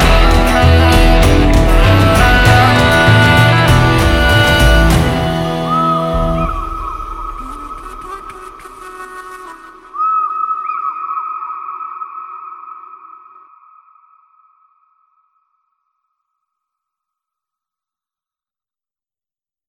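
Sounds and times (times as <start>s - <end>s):
instrumental music: 0.0s - 9.3s.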